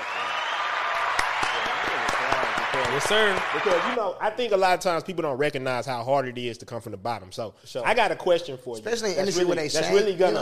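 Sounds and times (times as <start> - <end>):
round of applause: 0.0 - 4.0
speech: 2.8 - 10.4.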